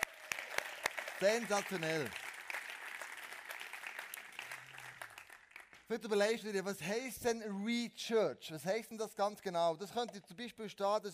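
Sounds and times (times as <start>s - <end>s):
audience applause: 0.0s - 5.8s
speech: 1.2s - 2.2s, 5.9s - 11.1s.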